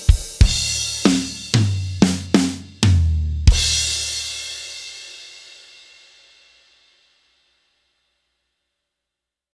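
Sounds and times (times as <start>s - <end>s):
country acoustic drum loop: 0.0s - 5.7s.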